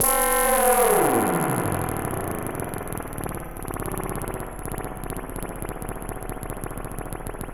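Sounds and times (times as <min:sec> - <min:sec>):
sound effects from EMS VCS3 synthesizer: 0:00.0 - 0:07.4.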